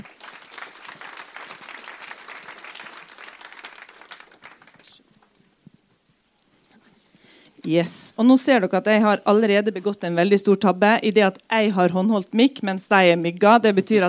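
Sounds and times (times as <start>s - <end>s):
audience applause: 0.0s - 5.4s
speech: 7.6s - 14.0s.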